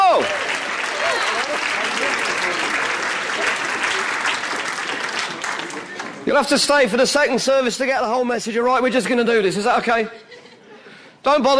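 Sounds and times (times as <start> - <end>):
audience clapping: 0.0 - 6.3
speech: 6.3 - 10.2, 11.2 - 11.5.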